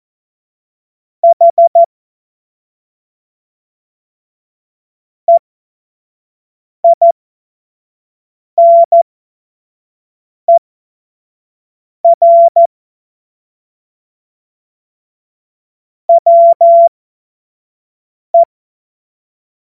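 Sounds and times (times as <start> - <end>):
CW Morse code beeps: 1.2 - 1.9, 6.9 - 7.1, 8.6 - 9.0, 12.1 - 12.7, 16.1 - 16.9.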